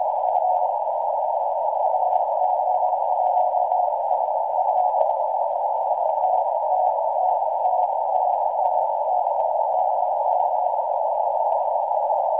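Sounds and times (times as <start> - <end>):
14MHz shortwave radio signal from Sputnik 6P3S transmitter: 0.0 - 12.3.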